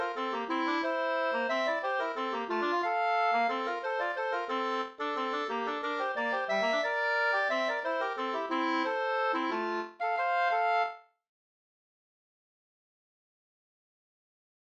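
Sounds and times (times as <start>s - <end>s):
waltz music: 0.0s - 11.0s.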